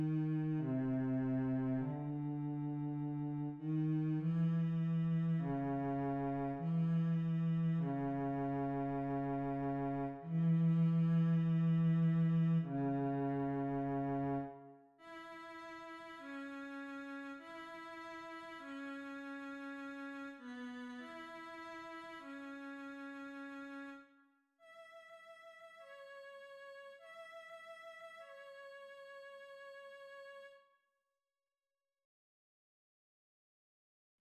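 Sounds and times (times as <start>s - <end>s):
cello: 0.0s - 24.0s.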